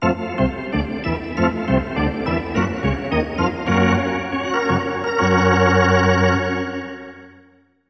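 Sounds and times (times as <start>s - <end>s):
hockey arena organ: 0.0s - 7.5s.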